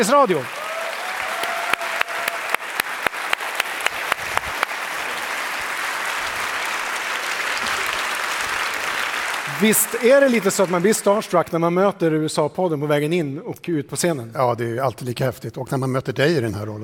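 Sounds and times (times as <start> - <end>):
speech: 0.0 - 0.6, 9.6 - 16.8
audience applause: 0.0 - 11.3.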